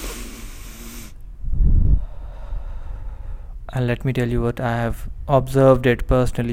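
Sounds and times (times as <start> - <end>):
deep breath: 0.0 - 3.6
low hum: 0.0 - 5.4
speech: 3.7 - 6.5.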